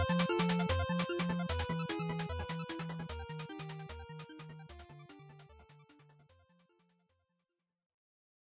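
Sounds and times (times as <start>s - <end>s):
NES shooter game boss music: 0.0s - 6.8s.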